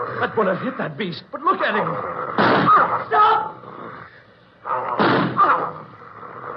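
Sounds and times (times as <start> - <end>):
speech: 0.2 - 3.2
gunshot in a radio drama: 2.4 - 2.8, 4.9 - 5.5.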